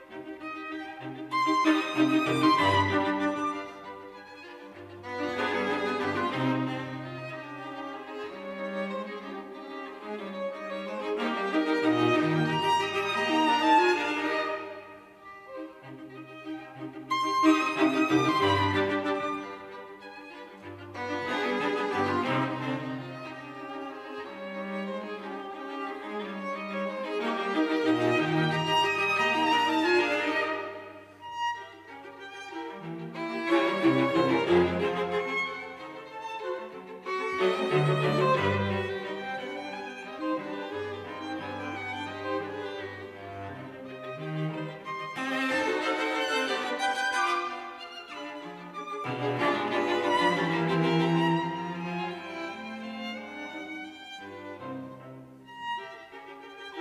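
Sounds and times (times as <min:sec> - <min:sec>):
string quartet playing a minuet: 0:00.0 - 0:56.7.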